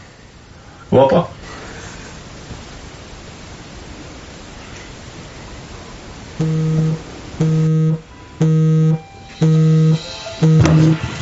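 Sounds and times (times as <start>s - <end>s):
speech: 0.9s - 1.4s
electronic alarm beeping: 6.4s - 11.0s.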